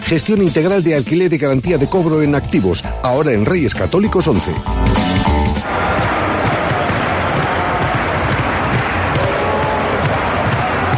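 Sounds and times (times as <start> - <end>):
speech: 0.1 - 5.1
basketball arena crowd chanting: 5.6 - 10.9.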